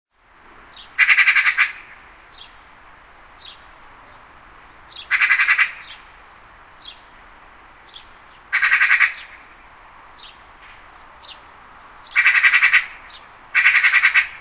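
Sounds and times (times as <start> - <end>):
magpie harsh rasping call: 1.0 - 2.0, 5.1 - 6.0, 8.5 - 9.4, 12.1 - 14.3.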